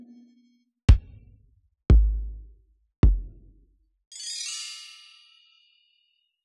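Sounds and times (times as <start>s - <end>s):
Yamaha DJX 146 keyboard analog drum kit: 0.9s - 1.3s, 3.1s - 3.4s.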